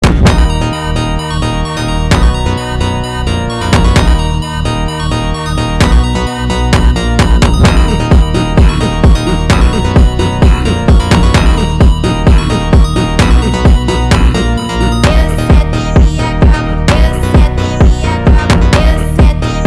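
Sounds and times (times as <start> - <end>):
Brazilian phonk music: 0.0 - 19.6.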